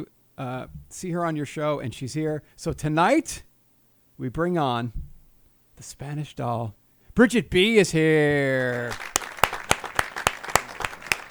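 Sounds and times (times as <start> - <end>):
speech: 0.0 - 3.5, 4.2 - 5.1, 5.8 - 9.1
studio audience clapping: 8.5 - 11.2.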